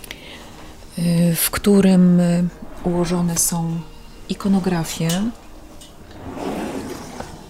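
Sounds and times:
speech: 1.0s - 5.4s
cabinet drawer sliding open: 6.0s - 7.4s.

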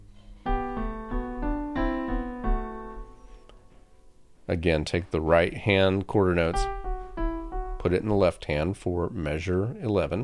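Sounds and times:
piano playing implied I, III, IV and V chords: 0.0s - 10.2s
speech: 4.5s - 6.8s, 7.8s - 10.2s.

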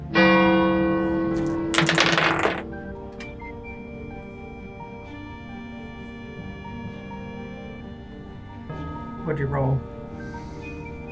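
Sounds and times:
clock tower bell striking noon: 0.0s - 1.7s
speech: 9.4s - 9.9s.

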